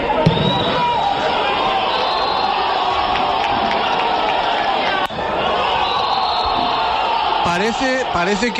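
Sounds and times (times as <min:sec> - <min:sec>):
players and fans shouting and cheering: 0:00.0 - 0:08.5.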